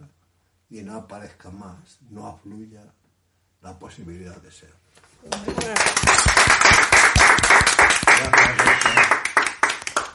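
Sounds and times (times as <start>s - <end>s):
speech: 0.7s - 3.0s, 3.6s - 7.6s, 8.2s - 9.1s
audience applause: 5.3s - 10.1s.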